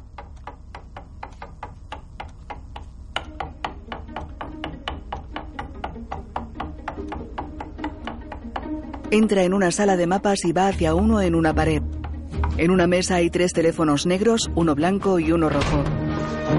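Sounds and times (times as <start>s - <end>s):
fingers drumming on an armrest: 0.0s - 12.7s
speech: 9.1s - 12.0s, 12.6s - 16.5s.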